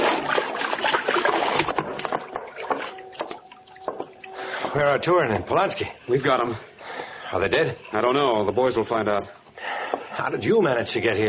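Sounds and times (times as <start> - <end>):
water splashing as someone is pulled out with a rope: 0.0 - 7.2
speech: 4.7 - 6.7, 7.3 - 9.4, 10.2 - 11.2.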